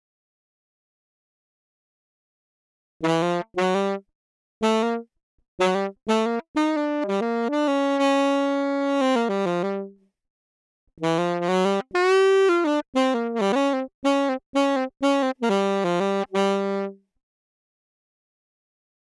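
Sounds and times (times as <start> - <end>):
saxophone: 3.0 - 10.0, 11.0 - 17.0.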